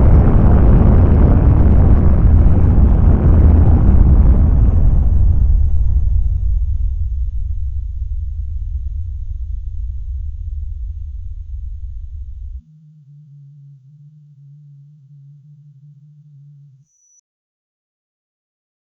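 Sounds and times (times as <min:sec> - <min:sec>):
distorted science fiction mechanical hums: 0:00.0 - 0:12.6.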